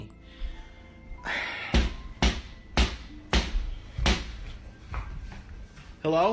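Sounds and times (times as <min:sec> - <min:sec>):
knocking on a back door: 0:01.8 - 0:04.3.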